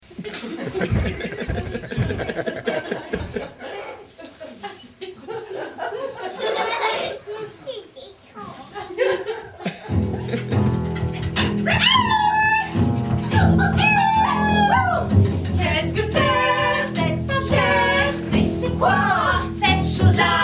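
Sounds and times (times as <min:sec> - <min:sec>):
laughter: 0:00.1 - 0:07.8, 0:08.4 - 0:20.4
dog: 0:10.7 - 0:14.1.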